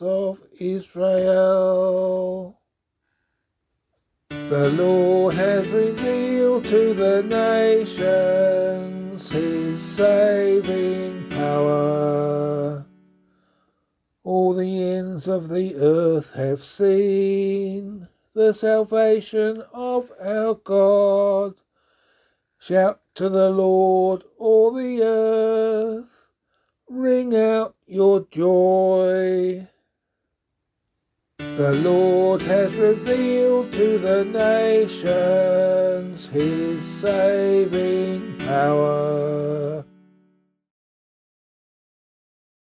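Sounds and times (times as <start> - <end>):
psalm in C sung by voice: 0.0 - 2.6, 4.3 - 13.1, 14.2 - 21.6, 22.6 - 26.2, 26.9 - 29.8, 31.4 - 40.2.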